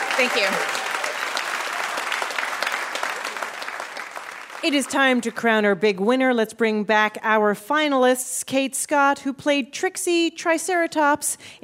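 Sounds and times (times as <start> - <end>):
audience applause: 0.0 - 5.3
speech: 0.2 - 0.9, 4.6 - 11.6.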